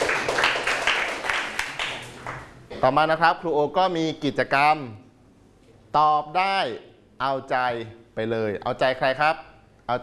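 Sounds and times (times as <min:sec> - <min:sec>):
students clapping for themselves in a Thai language lesson: 0:00.0 - 0:02.6
speech: 0:02.8 - 0:05.0, 0:05.9 - 0:10.0.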